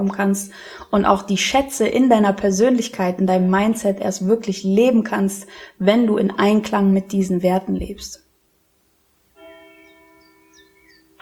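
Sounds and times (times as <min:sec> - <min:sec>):
speech: 0:00.0 - 0:08.2
church bell ringing: 0:09.4 - 0:11.2.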